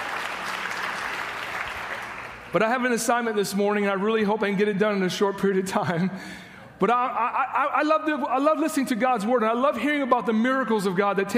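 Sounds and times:
audience applause: 0.0s - 2.5s
speech: 2.5s - 11.3s.

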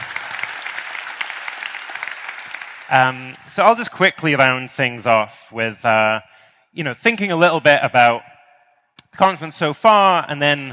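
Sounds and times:
audience applause: 0.0s - 3.9s
speech: 2.9s - 8.3s, 9.1s - 10.7s.

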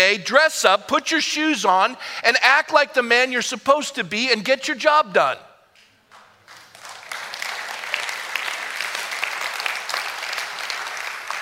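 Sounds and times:
speech: 0.1s - 5.5s
audience applause: 6.1s - 11.3s.

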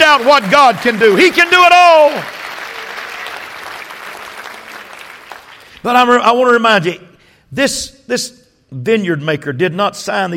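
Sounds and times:
audience clapping hands: 0.0s - 6.0s
speech: 0.2s - 2.4s, 5.8s - 10.3s.

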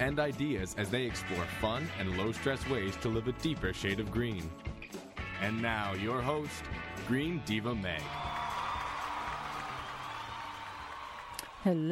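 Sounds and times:
speech: 0.0s - 4.7s, 5.4s - 8.3s, 11.6s - 11.9s
audience applause and cheering: 1.3s - 3.3s, 7.7s - 11.9s.

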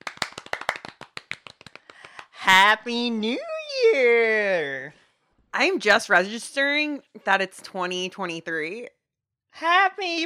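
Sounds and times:
hand clapping: 0.0s - 2.4s
speech: 2.5s - 5.0s, 5.6s - 9.0s, 9.6s - 10.2s.

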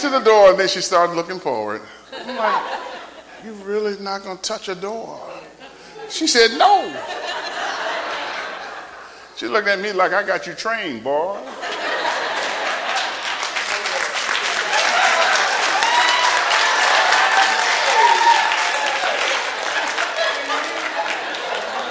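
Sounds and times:
speech: 0.0s - 5.4s, 6.1s - 7.5s, 9.4s - 11.7s
laughter: 2.1s - 3.9s, 5.2s - 9.3s, 11.3s - 21.8s
audience clapping and applause: 11.8s - 21.8s.

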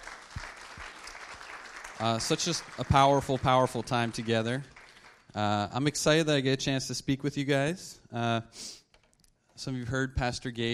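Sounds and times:
audience applause: 0.0s - 5.3s
speech: 2.0s - 4.7s, 5.3s - 8.8s, 9.6s - 10.7s.

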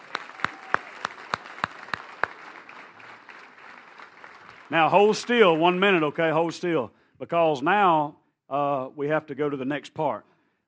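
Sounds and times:
audience applause: 0.0s - 6.6s
speech: 4.7s - 10.3s.

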